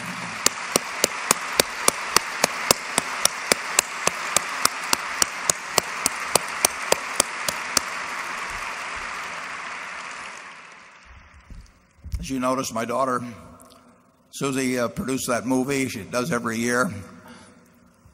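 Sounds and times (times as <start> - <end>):
audience applause: 0.0 - 11.4
speech: 12.3 - 13.5, 14.4 - 17.2.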